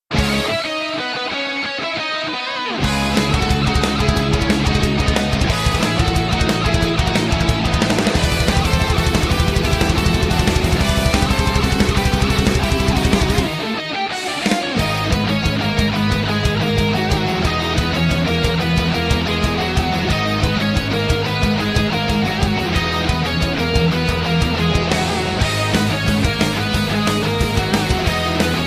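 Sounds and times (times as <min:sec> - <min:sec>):
power metal music: 0:00.1 - 0:28.6.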